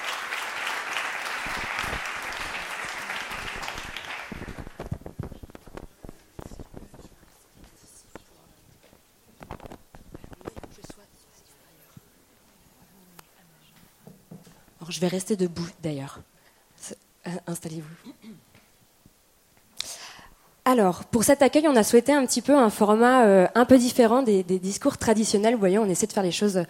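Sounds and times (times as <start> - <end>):
audience applause: 0.0 - 5.1
speech: 14.9 - 18.1, 20.7 - 26.6.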